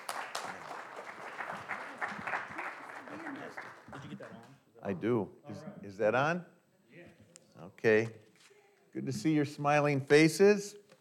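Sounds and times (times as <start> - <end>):
audience applause welcoming a speaker: 0.0 - 4.4
speech: 4.8 - 6.5, 7.6 - 8.2, 9.0 - 10.8.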